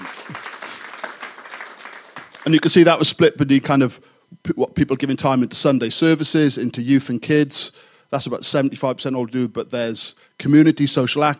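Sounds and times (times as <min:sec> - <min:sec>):
audience applause: 0:00.0 - 0:02.8
speech: 0:02.4 - 0:11.3.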